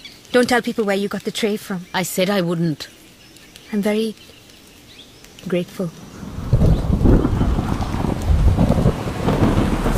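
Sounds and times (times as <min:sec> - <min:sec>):
rain lashing in a hurricane: 0:00.0 - 0:09.9
speech: 0:00.3 - 0:03.0, 0:03.7 - 0:04.3, 0:05.4 - 0:06.0
hurricane wind roaring: 0:05.6 - 0:09.9.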